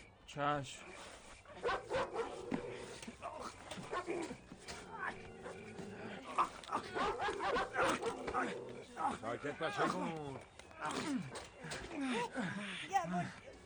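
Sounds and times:
speech: 0:00.3 - 0:02.2, 0:04.0 - 0:13.4
dog barking: 0:01.6 - 0:02.8, 0:06.7 - 0:08.6
laughter: 0:05.0 - 0:13.6.

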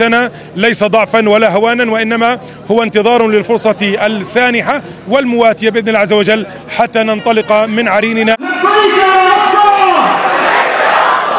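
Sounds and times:
speech: 0:00.0 - 0:09.4
crowd shouting: 0:08.4 - 0:11.3
crowd chanting in unison at rally: 0:10.1 - 0:11.3.

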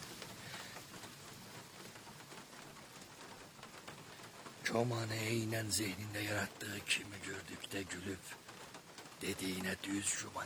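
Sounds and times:
sudden rain patter: 0:00.0 - 0:10.4
speech: 0:04.7 - 0:08.5, 0:09.2 - 0:10.4.

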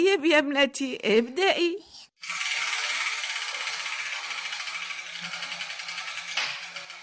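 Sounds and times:
speech: 0:00.0 - 0:02.4
spinning letter wheel ratcheting: 0:02.2 - 0:07.0.

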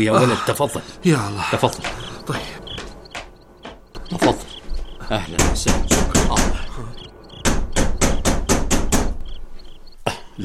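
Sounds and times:
speech: 0:00.0 - 0:02.5
knocking on a door: 0:01.8 - 0:09.4.

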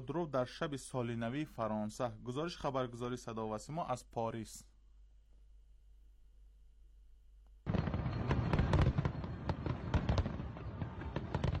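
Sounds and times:
speech: 0:00.0 - 0:04.7
New Year's Eve fireworks exploding: 0:07.6 - 0:11.5.

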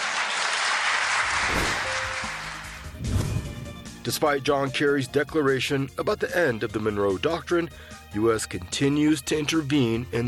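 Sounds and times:
audience applause: 0:00.0 - 0:02.9
speech: 0:04.1 - 0:10.2.

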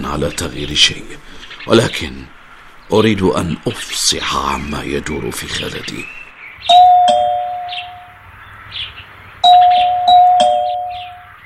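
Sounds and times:
speech: 0:00.1 - 0:06.2
two-tone ding-dong doorbell ringing at the door: 0:06.7 - 0:08.2, 0:09.4 - 0:11.4.

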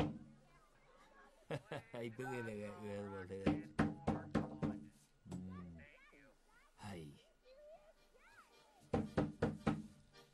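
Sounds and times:
knocking on a door: 0:00.0 - 0:00.2, 0:03.4 - 0:04.9, 0:08.9 - 0:09.9
laughter: 0:01.4 - 0:03.5
speech: 0:01.5 - 0:03.9, 0:06.9 - 0:07.2.

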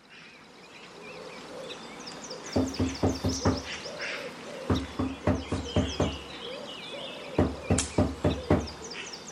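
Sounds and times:
faint birds chirping: 0:00.0 - 0:09.3
firm knocking on a door: 0:02.6 - 0:03.7, 0:04.7 - 0:06.2, 0:07.4 - 0:08.8.

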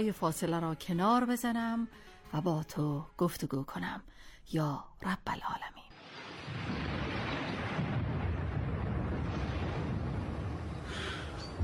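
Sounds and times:
speech: 0:00.0 - 0:05.9
rain: 0:06.0 - 0:11.6
thunder: 0:06.0 - 0:11.6.

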